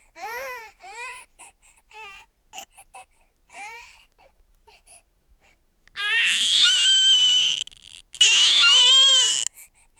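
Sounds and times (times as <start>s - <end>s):
baby crying inside the cabin: 6.0s - 9.5s.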